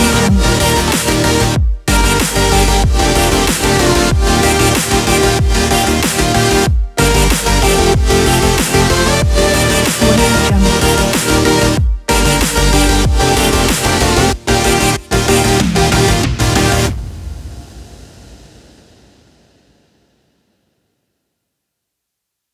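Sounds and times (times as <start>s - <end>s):
melodic dubstep: 0.0s - 16.9s.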